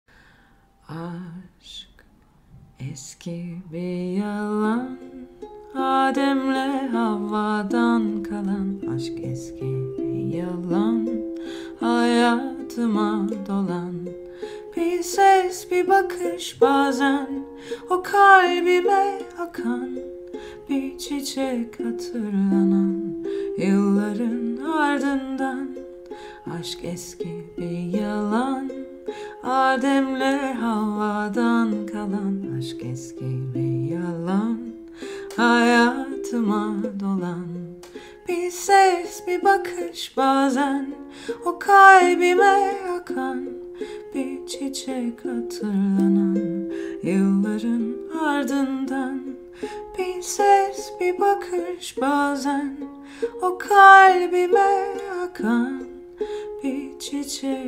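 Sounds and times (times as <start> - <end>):
ukulele cover: 2.5 - 57.6.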